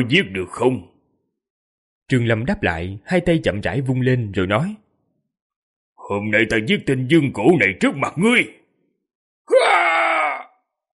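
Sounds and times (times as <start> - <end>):
speech: 0.0 - 0.9, 2.1 - 4.8, 6.1 - 8.6
wounded man shouting: 9.5 - 10.5.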